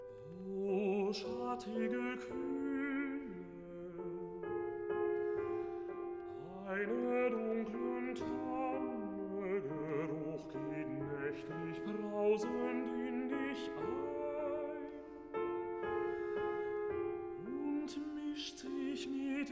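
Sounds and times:
recitative singing: 0.2s - 19.5s.

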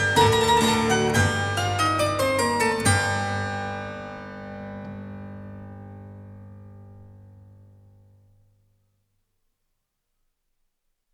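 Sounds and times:
harpsichord air in G major: 0.0s - 6.8s.

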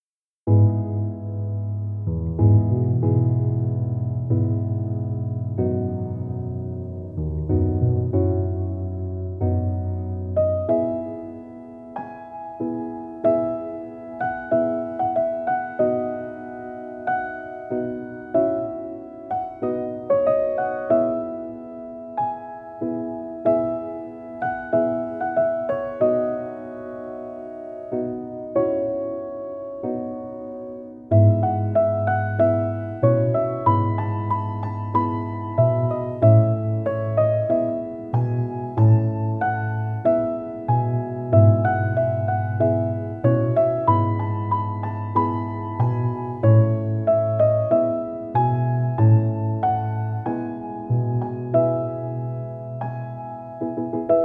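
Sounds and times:
relaxing piano music for studying: 0.2s - 54.2s.

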